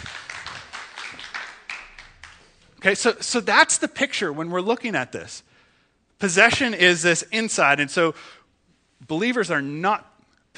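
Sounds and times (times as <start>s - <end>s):
round of applause: 0.0s - 2.7s
speech: 2.8s - 5.5s, 6.2s - 8.4s, 9.1s - 10.5s.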